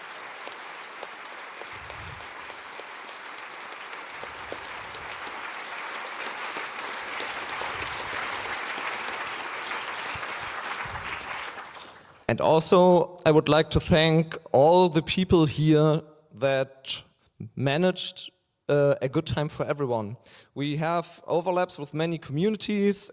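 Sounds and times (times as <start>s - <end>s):
audience applause: 0.0s - 12.3s
speech: 12.3s - 23.1s.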